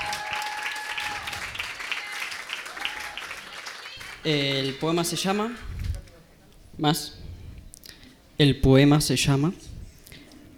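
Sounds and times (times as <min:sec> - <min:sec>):
faint whistles or tonal cheers: 0:00.0 - 0:04.0
audience applause: 0:00.0 - 0:04.9
speech: 0:04.2 - 0:05.7, 0:06.8 - 0:07.2, 0:08.4 - 0:09.7.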